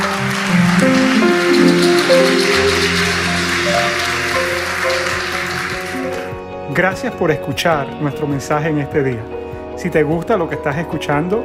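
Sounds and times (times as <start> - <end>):
audience applause: 0.0 - 6.4
speech: 6.8 - 11.4.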